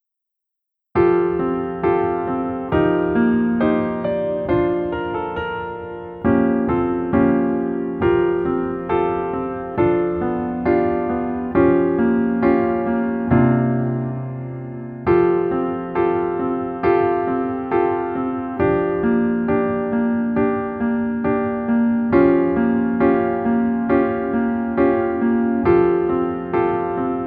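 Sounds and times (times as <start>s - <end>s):
piano: 0.8s - 27.2s.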